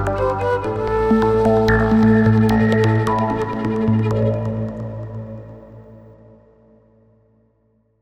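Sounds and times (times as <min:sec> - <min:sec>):
quena flute: 0:00.0 - 0:05.3.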